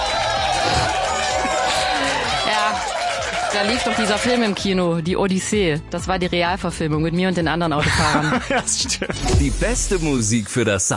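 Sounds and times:
applause: 0.0s - 4.9s
laughter: 0.1s - 4.6s, 7.8s - 9.4s
speech: 3.5s - 10.9s.

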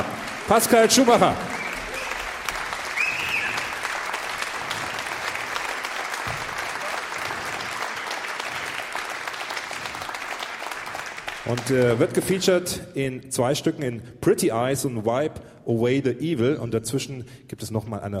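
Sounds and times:
concert audience applause welcoming a jazz vibraphonist: 0.0s - 12.4s
speech: 0.5s - 1.5s, 11.5s - 18.1s.

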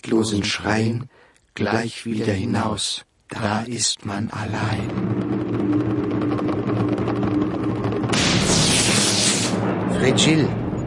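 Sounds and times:
speech: 0.0s - 5.6s, 10.1s - 10.6s
thunder: 4.4s - 10.8s.

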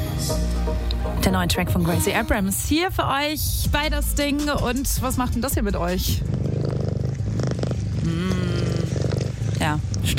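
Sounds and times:
speech: 0.3s - 6.5s, 8.1s - 8.7s, 9.6s - 10.1s
cat purring: 5.4s - 10.1s.

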